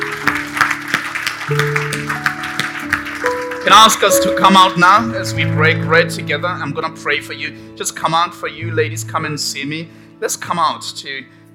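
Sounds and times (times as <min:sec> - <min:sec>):
audience applause: 0:00.0 - 0:05.0
speech: 0:01.5 - 0:02.2, 0:03.6 - 0:11.4.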